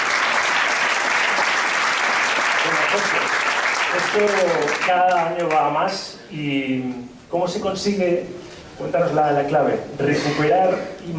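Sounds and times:
audience applause: 0:00.0 - 0:05.6
speech: 0:02.9 - 0:11.1.

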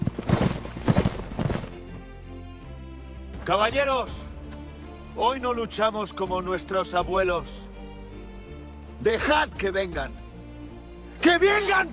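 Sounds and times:
cavalry horse hooves clip-clopping at speed: 0:00.0 - 0:02.0
speech: 0:03.5 - 0:04.3, 0:05.2 - 0:07.7, 0:09.0 - 0:10.2, 0:11.2 - 0:11.9.

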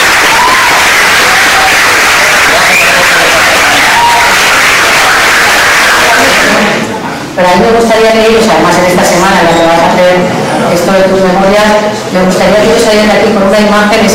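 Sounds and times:
audience applause: 0:00.0 - 0:06.9
speech: 0:07.4 - 0:14.1.

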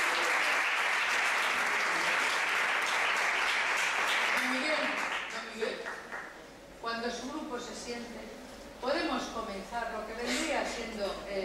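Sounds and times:
audience applause: 0:00.0 - 0:06.2
speech: 0:07.9 - 0:11.4.

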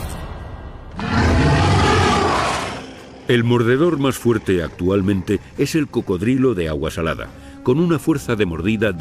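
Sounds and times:
dinosaur roar: 0:00.9 - 0:03.1
speech: 0:03.3 - 0:08.9.

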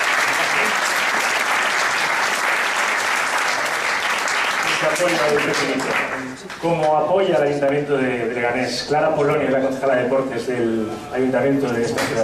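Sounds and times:
audience applause: 0:00.0 - 0:06.6
speech: 0:05.0 - 0:12.2.

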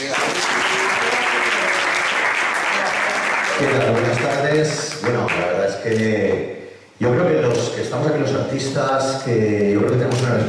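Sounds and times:
audience applause: 0:00.0 - 0:05.4
speech: 0:03.6 - 0:10.4.

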